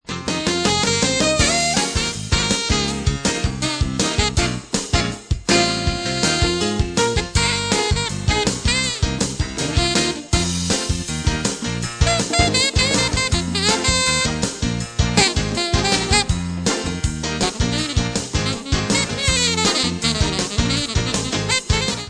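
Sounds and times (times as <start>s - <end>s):
samba music: 0.3s - 22.0s.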